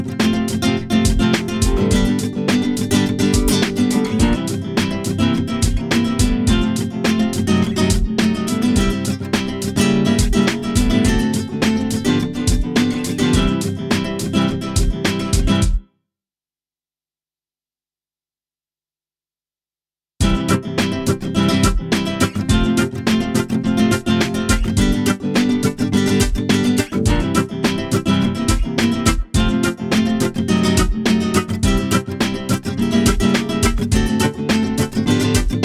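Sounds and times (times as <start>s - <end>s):
drums at 105 BPM: 0.0s - 15.8s, 20.2s - 35.6s.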